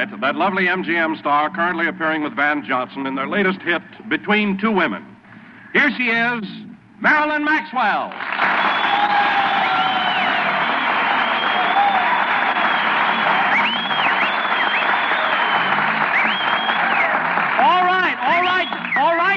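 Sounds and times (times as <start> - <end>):
speech: 0.0 - 5.1, 5.7 - 9.3
studio audience applause: 8.1 - 19.3.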